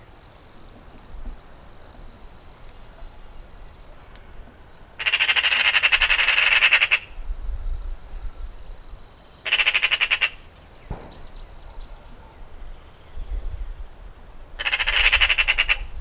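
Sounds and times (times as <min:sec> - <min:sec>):
Eurasian Magpie chattering: 0:05.0 - 0:07.1, 0:09.4 - 0:10.4, 0:14.6 - 0:15.9.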